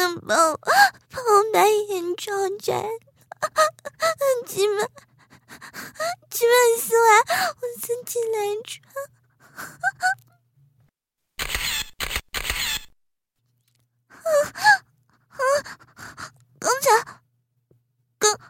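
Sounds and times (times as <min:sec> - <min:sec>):
speech: 0:00.2 - 0:10.2, 0:14.2 - 0:17.2, 0:18.2 - 0:18.4
camera shutter clicks: 0:11.4 - 0:12.9.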